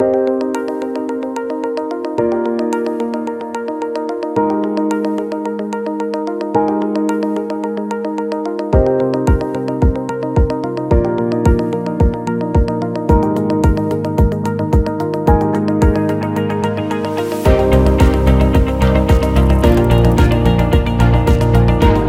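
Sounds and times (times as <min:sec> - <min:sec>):
corporate and medical background music for a medicine commercial: 0:00.0 - 0:22.0.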